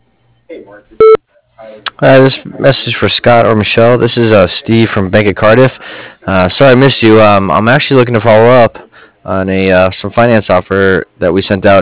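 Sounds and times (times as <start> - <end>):
speech: 0.6 - 11.8
voicemail beep: 1.0 - 1.2.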